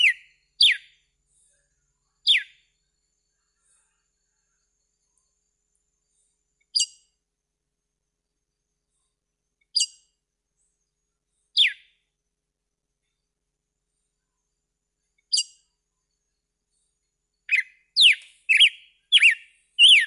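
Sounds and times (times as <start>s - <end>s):
red-cowled cardinal whistled song: 0.0s - 1.0s, 11.6s - 11.9s, 17.5s - 20.0s.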